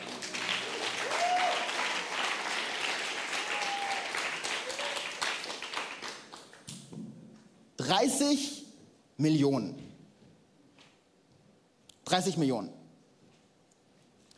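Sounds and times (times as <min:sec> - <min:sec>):
audience applause: 0:00.0 - 0:06.7
speech: 0:07.9 - 0:08.6, 0:09.2 - 0:09.8, 0:12.1 - 0:12.8.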